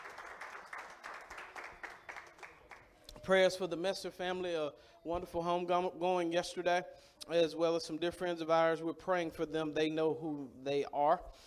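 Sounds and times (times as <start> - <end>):
crowd clapping: 0.0 - 3.2
speech: 3.2 - 11.4.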